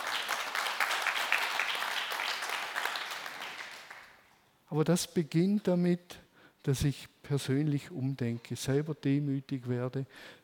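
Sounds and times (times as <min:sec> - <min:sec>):
crowd applause: 0:00.0 - 0:04.1
speech: 0:04.7 - 0:10.4.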